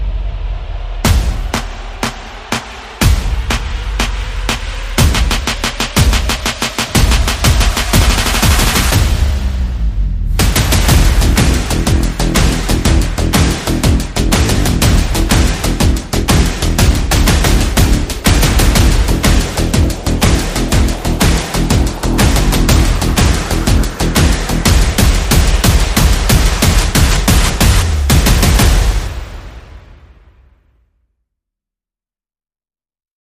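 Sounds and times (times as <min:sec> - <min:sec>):
percussion: 0:00.0 - 0:29.9
bass: 0:00.0 - 0:30.4
sound effects: 0:05.0 - 0:30.5.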